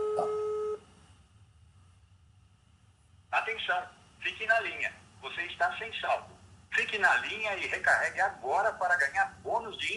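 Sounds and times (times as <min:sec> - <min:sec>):
two-note electronic mobile phone tone: 0:00.0 - 0:00.9
speech: 0:03.5 - 0:09.9.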